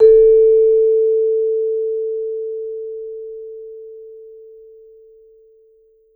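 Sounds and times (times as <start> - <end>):
vibraphone note played with medium mallet: 0.0 - 2.0.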